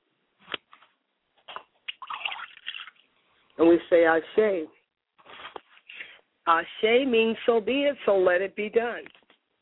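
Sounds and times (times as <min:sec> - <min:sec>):
water poured onto the ground: 0:01.9 - 0:03.1
speech: 0:03.6 - 0:04.8, 0:06.4 - 0:09.2.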